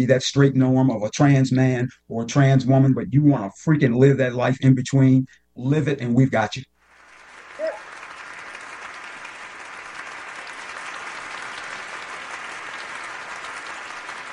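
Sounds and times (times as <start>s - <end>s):
speech: 0.0s - 6.7s
audience applause in the room: 6.8s - 14.3s.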